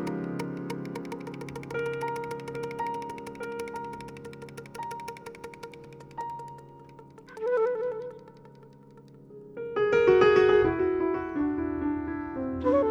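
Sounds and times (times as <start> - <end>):
flute: 0.0 - 9.2, 12.3 - 12.8
piano: 0.0 - 12.8.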